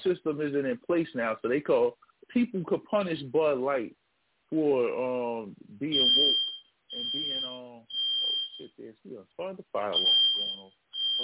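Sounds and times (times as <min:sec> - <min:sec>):
speech: 0:00.0 - 0:07.9, 0:08.6 - 0:11.2
fire alarm: 0:05.9 - 0:08.6, 0:10.0 - 0:11.2.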